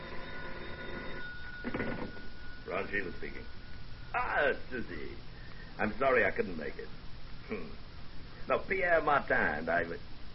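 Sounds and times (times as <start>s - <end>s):
telephone bell ringing: 0.0s - 3.8s
speech: 2.9s - 7.8s, 8.5s - 10.1s.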